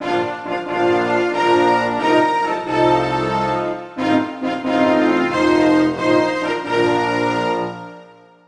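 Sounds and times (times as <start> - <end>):
national anthem: 0.0 - 8.2.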